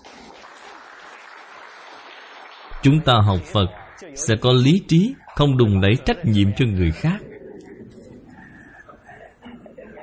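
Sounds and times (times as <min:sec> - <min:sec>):
audience applause at a Buddhist lecture: 0:00.0 - 0:07.2
speech: 0:02.8 - 0:07.3.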